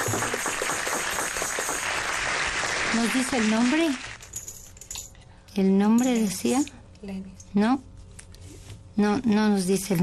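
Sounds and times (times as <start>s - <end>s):
applause sent from Paris: 0.0s - 4.2s
speech: 2.9s - 4.1s, 5.6s - 7.9s, 9.0s - 10.0s.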